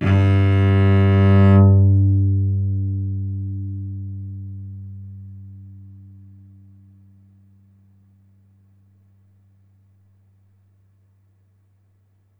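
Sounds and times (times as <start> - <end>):
cello: 0.0 - 6.6.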